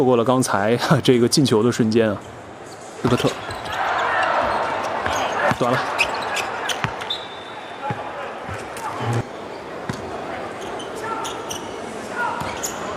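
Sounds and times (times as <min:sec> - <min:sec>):
speech: 0:00.0 - 0:02.4, 0:03.0 - 0:03.6, 0:05.6 - 0:06.1
crowd noise: 0:00.0 - 0:12.9
basketball dribbled on a court: 0:04.4 - 0:07.1.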